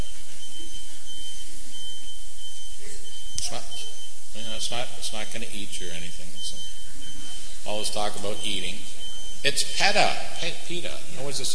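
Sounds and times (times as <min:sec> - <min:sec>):
truck reversing beeper: 0:00.0 - 0:11.5
speech: 0:03.4 - 0:06.8, 0:07.6 - 0:11.5.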